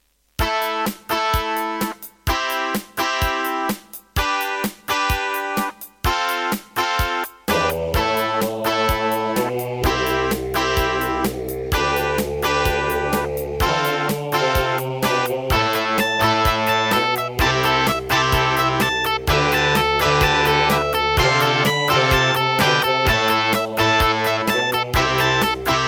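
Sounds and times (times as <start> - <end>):
Roland SD-50 synthesizer in GS mode: 0.4 - 25.8.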